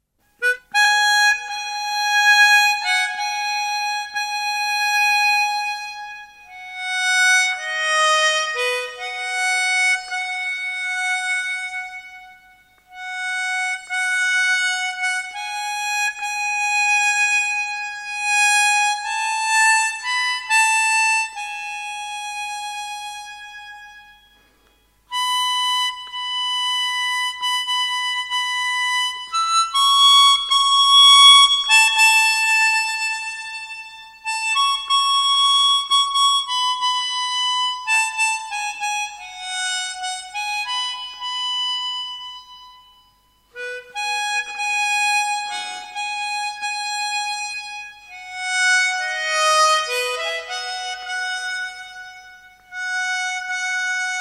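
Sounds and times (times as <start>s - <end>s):
instrumental music: 0.0s - 54.1s.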